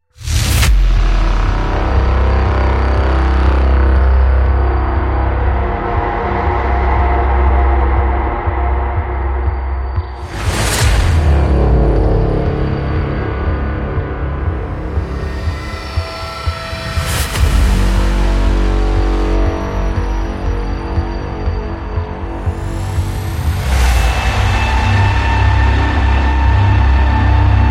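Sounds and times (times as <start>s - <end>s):
cinematic braams: 0.0s - 27.6s.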